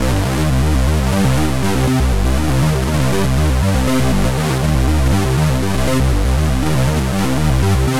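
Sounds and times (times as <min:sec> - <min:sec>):
trance bass loop: 0:00.0 - 0:07.9.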